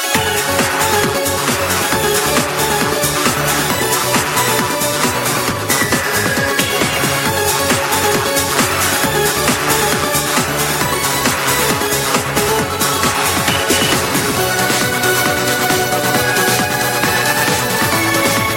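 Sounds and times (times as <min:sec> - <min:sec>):
Euro Dance ringtone: 0:00.1 - 0:18.4.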